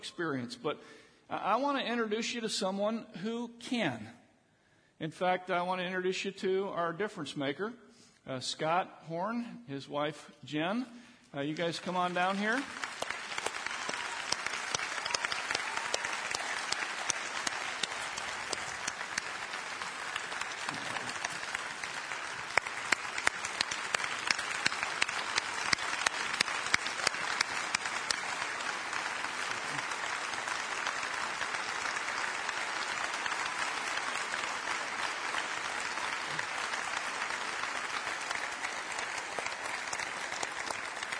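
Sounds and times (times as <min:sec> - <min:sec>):
speech: 0:00.0 - 0:04.2, 0:05.0 - 0:12.9
church audience applause: 0:11.5 - 0:41.1.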